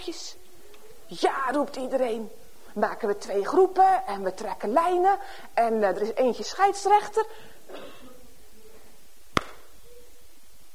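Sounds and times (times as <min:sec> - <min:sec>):
faint steady hiss: 0:00.0 - 0:10.7
speech: 0:00.1 - 0:00.4, 0:01.1 - 0:08.0
single sharp hand clap: 0:09.4 - 0:09.6.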